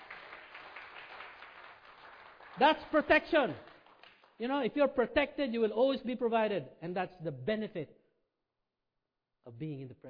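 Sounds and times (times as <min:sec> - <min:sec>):
audience clapping hands: 0:00.0 - 0:04.7
speech: 0:02.6 - 0:03.7, 0:04.4 - 0:08.0, 0:09.4 - 0:10.0.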